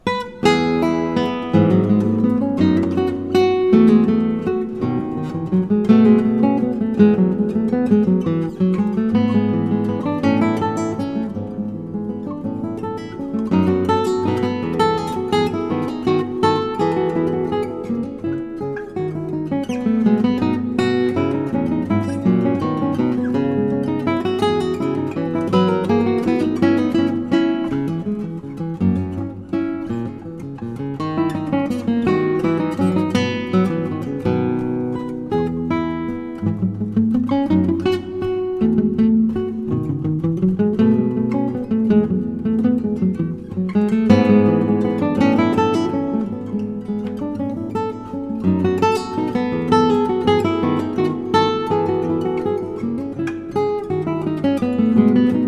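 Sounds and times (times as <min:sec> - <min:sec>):
gigue lute piece: 0:00.0 - 0:55.4.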